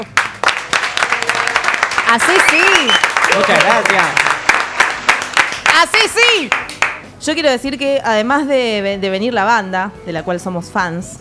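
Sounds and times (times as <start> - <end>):
audience applause for the band: 0.0 - 7.1
speech: 2.1 - 4.3, 5.8 - 11.2.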